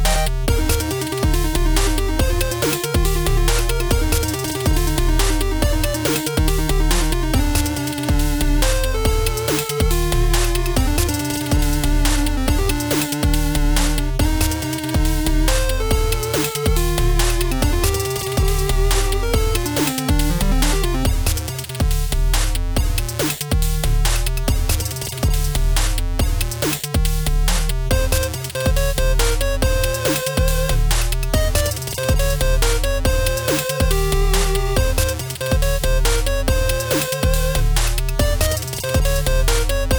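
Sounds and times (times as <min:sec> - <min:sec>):
8-bit game level music: 0:00.0 - 0:25.5, 0:26.2 - 0:39.9.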